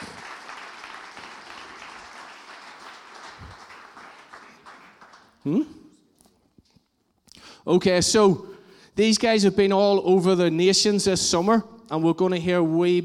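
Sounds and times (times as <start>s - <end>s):
crowd applauding: 0.0s - 5.6s
speech: 5.4s - 5.8s, 7.7s - 13.0s.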